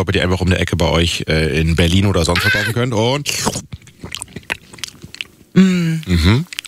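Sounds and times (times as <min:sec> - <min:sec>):
speech: 0:00.0 - 0:04.2, 0:05.6 - 0:06.5
biting and chewing a juicy mango: 0:01.6 - 0:06.6.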